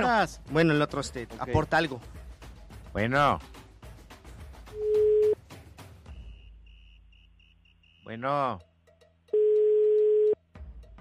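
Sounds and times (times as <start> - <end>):
speech: 0.0 - 2.2, 2.9 - 3.6, 8.1 - 8.7
ringback tone of an unanswered telephone call: 4.8 - 5.4, 9.4 - 10.4.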